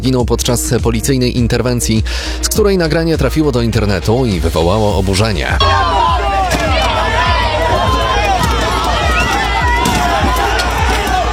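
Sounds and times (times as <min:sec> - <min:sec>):
speech: 0:00.0 - 0:06.6
protesters clashing with police: 0:05.6 - 0:11.3.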